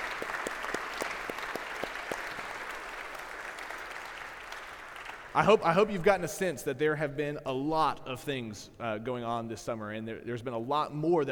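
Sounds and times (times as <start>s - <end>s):
audience applause: 0.0s - 5.6s
speech: 5.4s - 11.3s.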